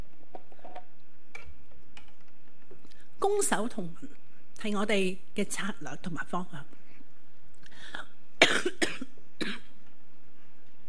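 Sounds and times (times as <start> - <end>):
speech: 3.2 - 6.8
person coughing from a sensitive airway: 8.4 - 9.7.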